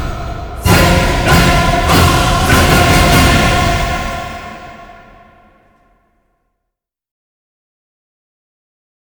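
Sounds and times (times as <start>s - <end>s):
orchestra: 0.0s - 5.8s
choir: 0.0s - 5.9s.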